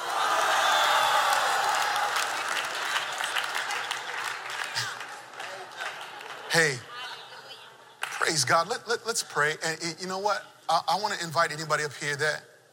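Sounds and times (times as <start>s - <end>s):
large crowd applauding: 0.0s - 7.3s
speech: 6.5s - 6.9s, 8.3s - 12.5s.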